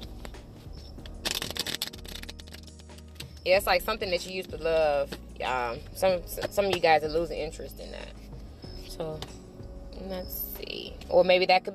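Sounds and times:
deck of cards shuffling: 0.0 - 3.4
soft low musical hum: 0.0 - 11.7
speech: 3.4 - 8.2, 9.0 - 9.4, 10.0 - 10.4, 11.1 - 11.7.

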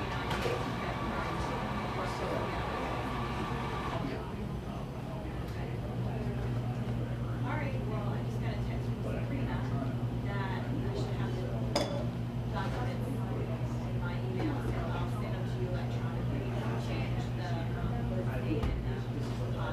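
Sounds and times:
overlapping chatter in a coffee shop: 0.0 - 19.7.

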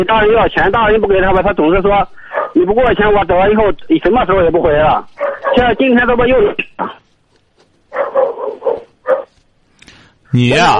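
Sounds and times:
speech: 0.0 - 6.9, 10.3 - 10.7
dog barking: 2.2 - 2.6, 5.2 - 5.8, 7.9 - 9.4.

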